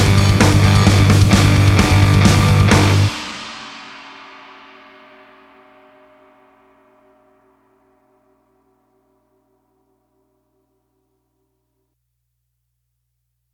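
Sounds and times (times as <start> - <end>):
galloping fifths riff: 0.0 - 3.6.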